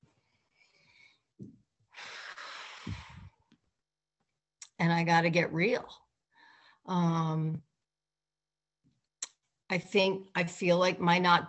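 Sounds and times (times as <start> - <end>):
deep breath: 0.2 - 1.3, 1.9 - 3.4, 6.3 - 6.9
speech: 4.8 - 6.0, 6.9 - 7.7, 9.7 - 11.4.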